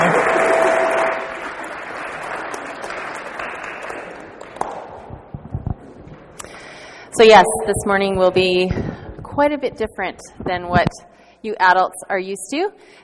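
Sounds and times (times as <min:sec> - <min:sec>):
audience applause: 0:00.0 - 0:04.7
speech: 0:07.2 - 0:13.0.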